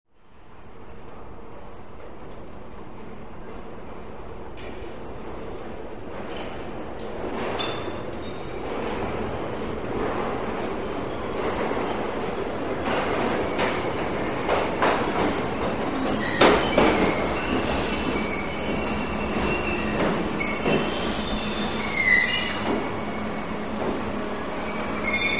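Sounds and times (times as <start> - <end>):
subway train at platform: 0.1 - 25.3.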